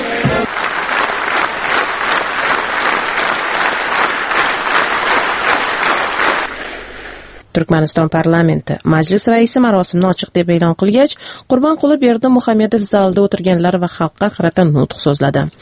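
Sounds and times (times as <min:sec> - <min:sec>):
standing ovation from elders and state officials for Gurbanguly Berdimuhamedov: 0:00.2 - 0:07.1
speech: 0:07.6 - 0:15.6.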